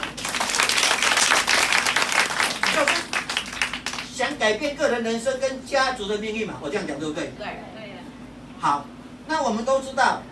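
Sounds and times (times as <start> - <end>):
crowd applause: 0.0 - 4.1
speech: 4.4 - 7.8, 8.6 - 10.2.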